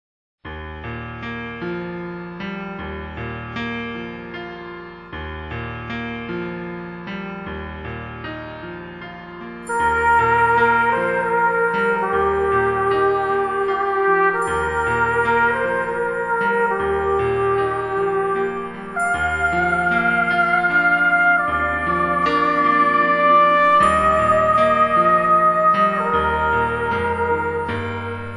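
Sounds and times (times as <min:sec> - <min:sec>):
orchestral Christmas carol: 0:09.7 - 0:28.3.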